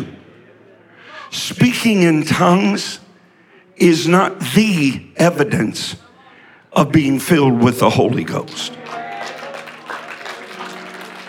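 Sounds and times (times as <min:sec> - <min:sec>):
speech: 0:01.3 - 0:03.0, 0:03.8 - 0:06.0, 0:06.8 - 0:08.8
audience clapping: 0:08.7 - 0:11.2.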